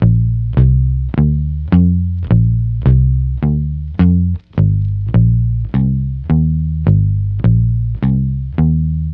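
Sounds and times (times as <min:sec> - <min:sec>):
swing bass guitar: 0:00.0 - 0:09.1.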